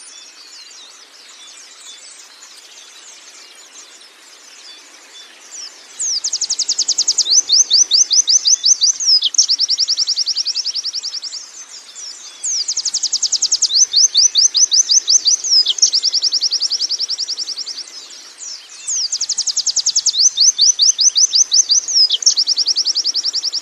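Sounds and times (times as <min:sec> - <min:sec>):
canary song with fast high trills and rattling trill: 0:05.4 - 0:23.6.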